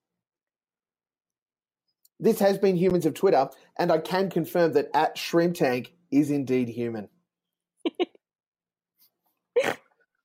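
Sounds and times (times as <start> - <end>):
speech: 2.2 - 7.2
person snorting: 9.6 - 9.8.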